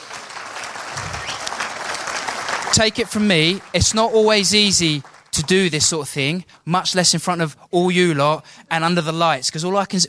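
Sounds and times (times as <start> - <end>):
audience applause: 0.0 - 5.9
speech: 2.7 - 10.0.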